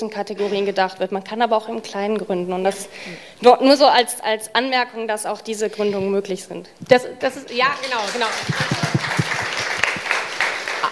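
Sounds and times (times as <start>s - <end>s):
speech: 0.0s - 9.0s
clapping: 7.8s - 10.8s.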